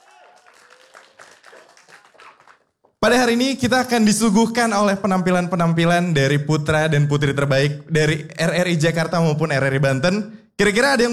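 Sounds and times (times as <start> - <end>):
faint afternoon audience applause at an RRI Jakarta and RRI Banten event: 0.0 - 3.0
speech: 3.0 - 11.1.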